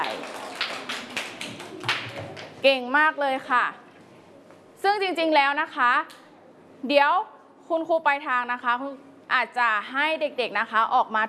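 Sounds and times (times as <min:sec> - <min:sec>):
classroom children clapping for a classmate: 0:00.0 - 0:02.6
speech: 0:02.6 - 0:03.8, 0:04.8 - 0:06.2, 0:06.8 - 0:11.2.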